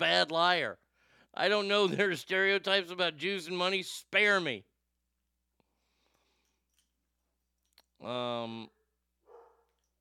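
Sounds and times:
speech: 0.0s - 4.7s, 8.0s - 8.8s
dog barking: 9.2s - 9.8s.

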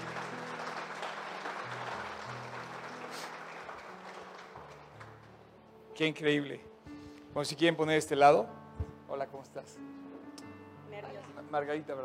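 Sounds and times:
audience applause: 0.0s - 5.4s
speech: 6.0s - 6.7s, 7.4s - 10.0s, 11.4s - 12.0s.

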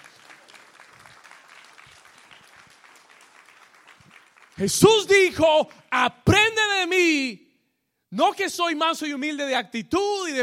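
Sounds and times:
audience applauding: 0.0s - 5.1s
speech: 4.6s - 6.2s, 6.9s - 7.4s, 8.2s - 10.4s.

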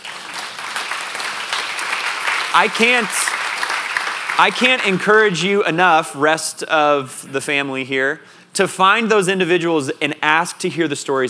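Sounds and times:
audience applause: 0.0s - 5.4s
speech: 2.5s - 3.2s, 4.4s - 11.2s.

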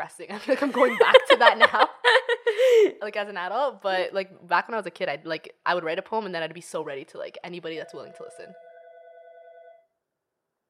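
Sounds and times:
speech: 0.1s - 8.6s
laughter: 0.5s - 2.9s
telephone ringing: 7.8s - 9.9s.

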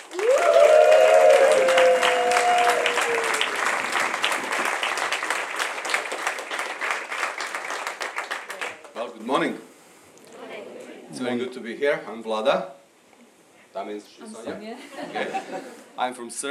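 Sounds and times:
audience applause welcoming two guest speakers: 0.0s - 9.0s
speech: 11.6s - 12.8s, 13.8s - 16.4s
laughter: 14.7s - 15.9s.

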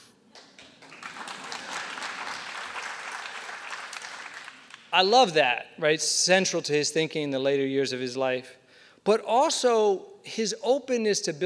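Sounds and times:
audience clapping: 0.3s - 5.1s
speech: 4.9s - 11.4s.

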